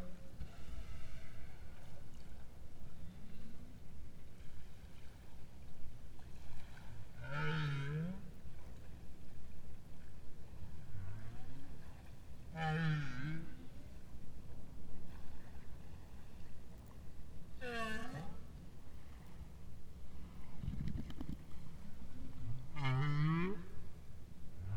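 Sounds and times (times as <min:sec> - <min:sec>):
right whale: 0:00.0 - 0:05.6, 0:06.2 - 0:09.0, 0:10.6 - 0:14.1, 0:17.6 - 0:19.4, 0:21.9 - 0:24.0.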